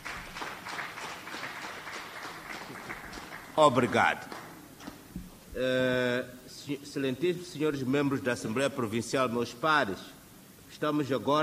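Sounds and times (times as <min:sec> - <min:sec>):
audience applause: 0:00.0 - 0:04.6
speech: 0:03.6 - 0:04.4, 0:05.6 - 0:10.2, 0:10.8 - 0:11.4.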